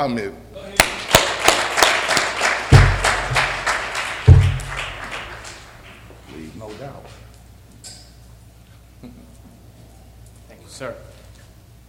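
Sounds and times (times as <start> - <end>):
speech: 0.0 - 0.4, 10.8 - 11.1
audience applause: 0.8 - 6.1
low thumps: 2.7 - 5.4.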